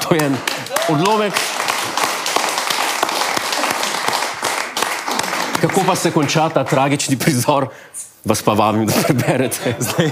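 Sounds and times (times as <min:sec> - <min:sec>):
group of people applauding: 0:00.0 - 0:07.4
speech: 0:00.1 - 0:01.6, 0:05.6 - 0:10.0
laughter: 0:08.9 - 0:10.0.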